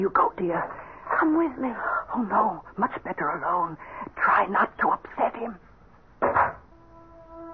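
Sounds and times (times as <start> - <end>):
speech: 0.1 - 5.7
heavy door thudding shut: 6.2 - 6.7.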